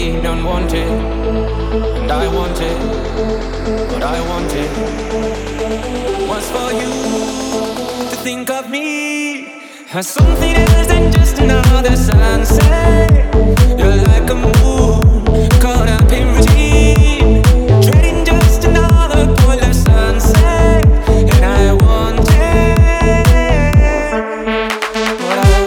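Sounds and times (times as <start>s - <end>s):
EDM remix: 0.0s - 9.5s, 10.1s - 25.6s.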